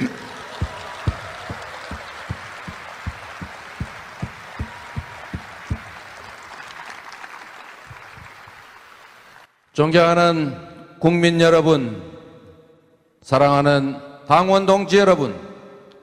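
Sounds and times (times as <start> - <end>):
sustained crowd applause: 0.0 - 9.5
deep evenly spaced thumps: 0.4 - 6.2
speech: 9.8 - 12.1, 13.3 - 15.5.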